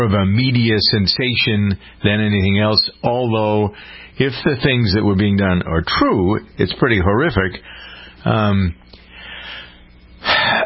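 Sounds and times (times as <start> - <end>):
speech: 0.0 - 8.9
speaker's sharp intake of breath: 3.7 - 4.2, 7.6 - 8.2, 8.9 - 10.6.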